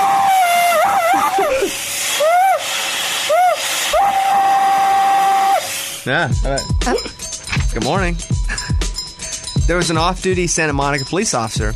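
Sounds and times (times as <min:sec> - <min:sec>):
shrieking vacuum cleaner: 0:00.0 - 0:06.0
speech: 0:06.0 - 0:08.4, 0:09.7 - 0:11.7.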